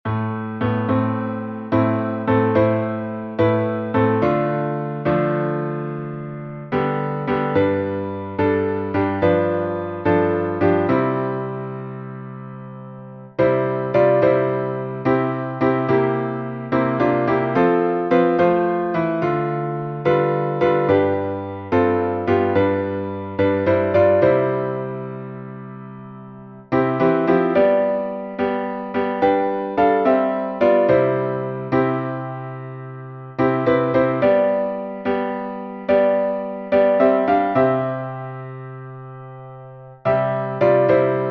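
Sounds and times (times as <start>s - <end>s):
midi piano: 0.0s - 41.3s.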